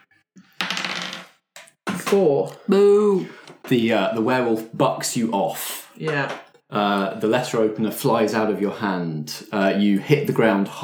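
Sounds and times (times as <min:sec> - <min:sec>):
dice being rolled: 0:00.6 - 0:02.1
speech: 0:02.1 - 0:10.8.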